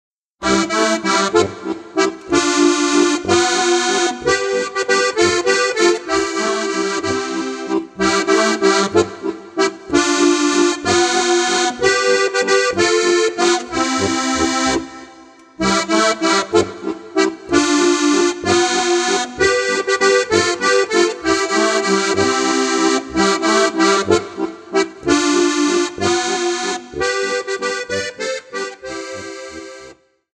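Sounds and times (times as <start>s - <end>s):
waltz music: 0.4s - 30.0s.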